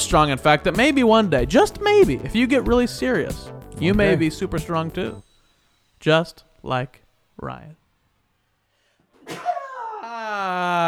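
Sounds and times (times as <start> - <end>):
speech: 0.0 - 5.2, 6.0 - 7.8, 9.3 - 9.5, 10.4 - 10.8
sneeze: 9.2 - 10.0.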